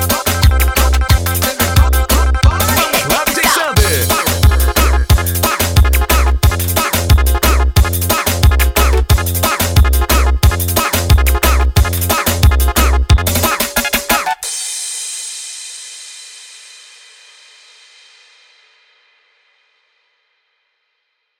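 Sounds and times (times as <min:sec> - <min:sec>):
solo music: 0:00.0 - 0:14.3.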